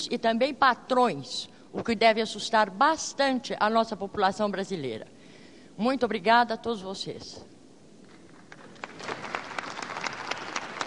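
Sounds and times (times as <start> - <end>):
speech: 0.0 - 5.1, 5.8 - 7.5
audience applause: 8.5 - 10.8.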